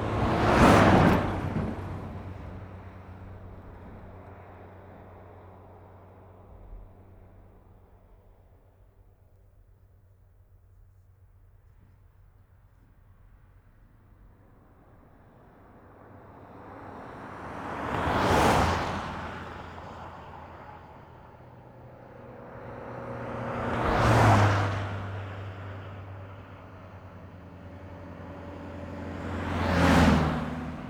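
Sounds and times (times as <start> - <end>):
passing traffic on a country road: 0.0 - 7.4, 14.7 - 30.8.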